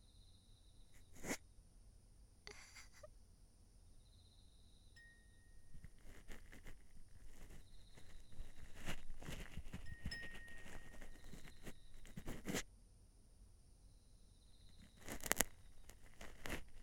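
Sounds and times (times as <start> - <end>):
ear cleaning ASMR in the left ear: 5.8 - 12.6, 15.0 - 16.8.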